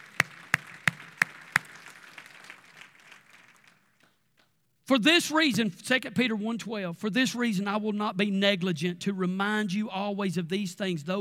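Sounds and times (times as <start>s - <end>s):
audience clapping in praise: 0.0s - 4.2s
speech: 4.9s - 11.1s.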